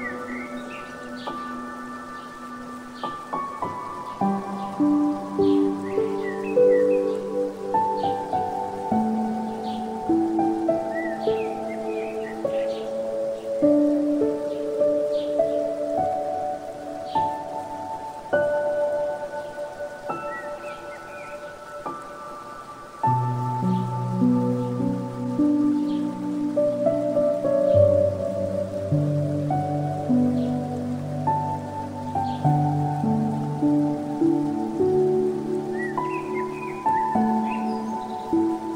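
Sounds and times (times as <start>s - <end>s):
bird: 0.0s - 8.4s, 9.2s - 15.7s, 19.3s - 22.8s, 35.7s - 38.7s
piano: 0.0s - 38.7s.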